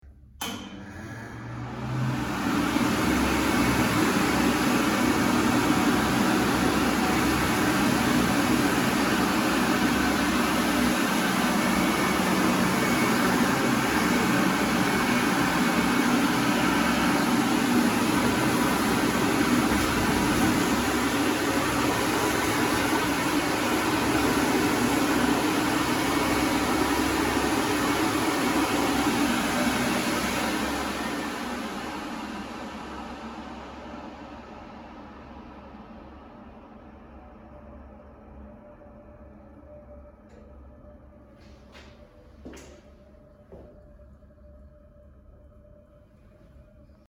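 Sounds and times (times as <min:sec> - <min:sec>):
hand dryer: 0:00.4 - 0:35.1.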